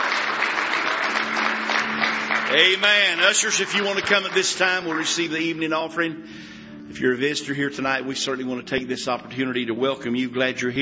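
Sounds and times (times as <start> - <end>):
congregation clapping hands in praise during a church service: 0.0 - 5.9
speech: 2.5 - 10.8.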